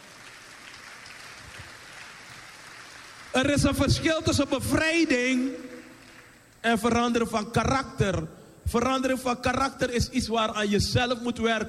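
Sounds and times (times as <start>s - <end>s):
audience applause: 0.0s - 3.4s
speech: 3.3s - 5.7s, 6.6s - 11.6s.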